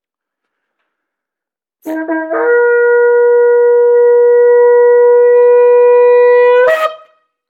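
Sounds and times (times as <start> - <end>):
long final shofar blast: 1.8 - 7.2.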